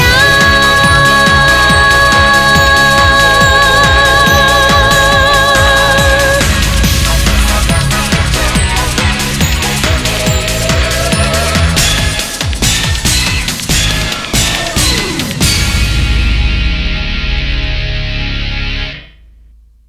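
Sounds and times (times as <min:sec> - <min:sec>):
short theme music: 0:00.1 - 0:19.5.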